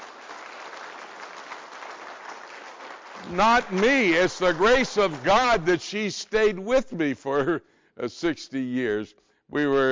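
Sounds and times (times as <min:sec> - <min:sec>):
audience applause: 0:00.0 - 0:05.8
speech: 0:03.2 - 0:09.9.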